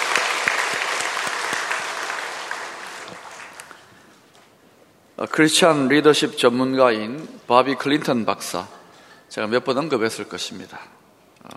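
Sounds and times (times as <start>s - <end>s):
audience applause: 0.0s - 3.9s
speech: 5.2s - 11.5s.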